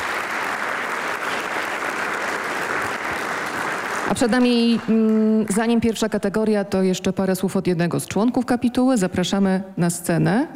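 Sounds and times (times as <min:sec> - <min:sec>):
audience applause: 0:00.0 - 0:05.5
speech: 0:04.1 - 0:10.5.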